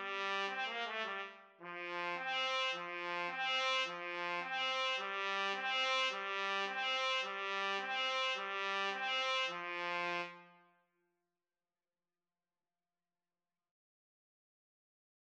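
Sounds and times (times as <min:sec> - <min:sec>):
trumpet duet: 0:00.0 - 0:10.6.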